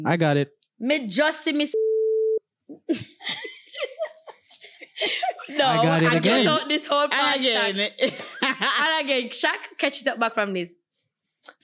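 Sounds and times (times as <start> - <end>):
speech: 0.0 - 1.8, 2.9 - 3.5, 5.0 - 10.8, 11.4 - 11.6
censor beep over a spoken name: 1.7 - 2.4
people talking and laughing: 2.8 - 9.2.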